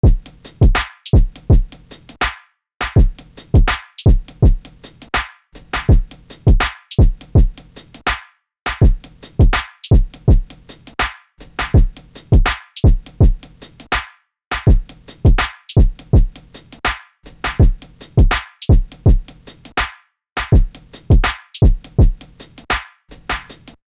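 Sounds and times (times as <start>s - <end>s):
drum loop: 0.0s - 14.0s, 14.6s - 19.8s, 20.4s - 23.8s.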